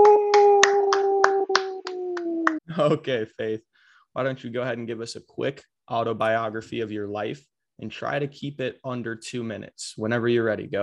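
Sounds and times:
clapping: 0:00.0 - 0:02.6
speech: 0:02.8 - 0:10.8.

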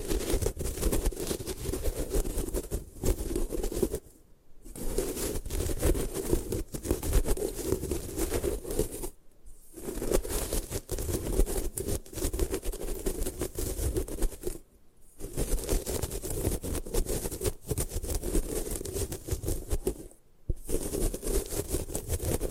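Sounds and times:
gym chalk being crushed and destroyed: 0:00.0 - 0:04.1, 0:04.7 - 0:14.6, 0:15.2 - 0:22.4.

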